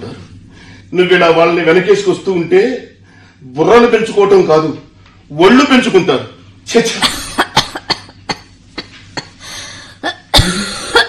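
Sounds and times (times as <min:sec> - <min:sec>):
speech: 0:00.9 - 0:07.2
woman coughing: 0:07.0 - 0:11.0.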